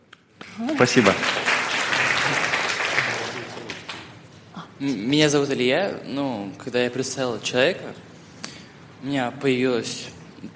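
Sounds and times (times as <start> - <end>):
audience applause: 0.4 - 4.1
speech: 0.6 - 1.5, 4.8 - 8.1, 9.0 - 10.5.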